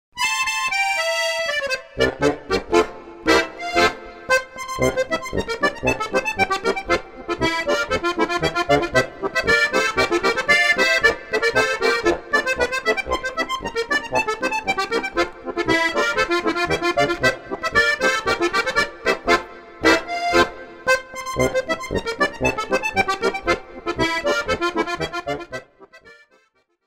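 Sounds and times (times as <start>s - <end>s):
accordion polka: 0.1s - 26.8s.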